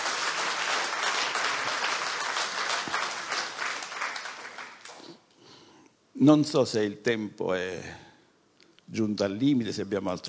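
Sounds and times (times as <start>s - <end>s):
audience applause: 0.0s - 5.2s
speech: 6.2s - 8.1s, 8.9s - 10.2s.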